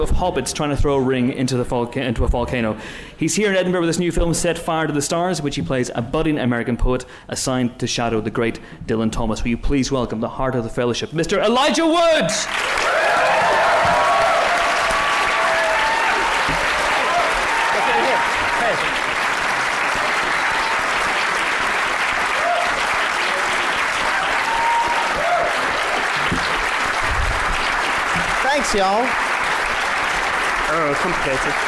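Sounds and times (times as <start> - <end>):
speech: 0.0 - 13.0, 28.7 - 29.2, 30.8 - 31.6
audience applause: 12.4 - 31.6.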